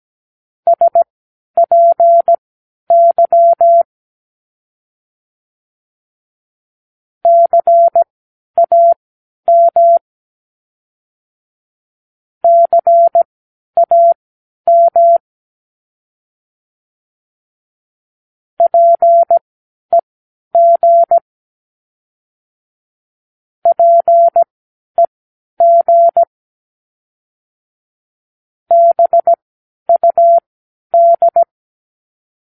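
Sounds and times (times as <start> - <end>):
morse code practice words: 0.7 - 3.9, 7.3 - 10.0, 12.5 - 13.2, 13.8 - 15.2, 18.6 - 20.0, 20.6 - 21.2, 23.7 - 24.5, 25.6 - 26.3, 28.7 - 31.5.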